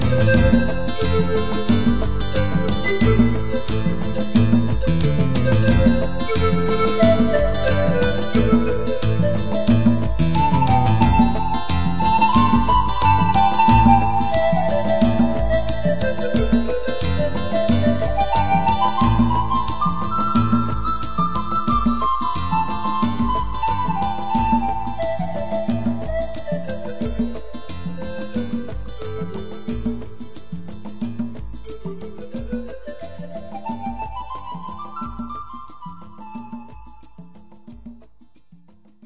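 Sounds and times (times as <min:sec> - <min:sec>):
pan flute: 0:00.0 - 0:38.6.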